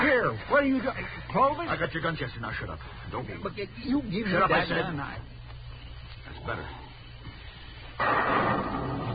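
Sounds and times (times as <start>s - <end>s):
speech: 0.2s - 5.4s, 6.3s - 6.8s
thunder: 8.0s - 9.1s.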